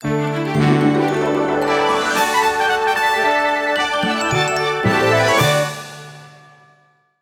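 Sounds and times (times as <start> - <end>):
lesson completed jingle: 0.0 - 5.8.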